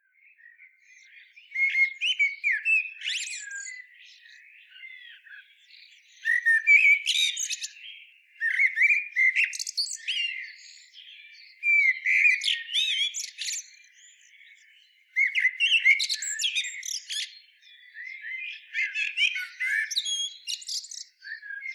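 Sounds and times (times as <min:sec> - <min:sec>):
common blackbird singing: 0:00.1 - 0:21.7.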